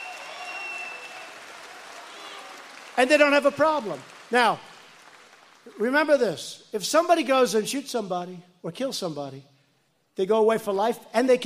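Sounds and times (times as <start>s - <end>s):
high whistles and shouts: 0.0s - 1.4s
crowd clapping and cheering: 0.0s - 5.9s
speech: 3.0s - 4.7s, 5.6s - 9.5s, 10.2s - 11.4s.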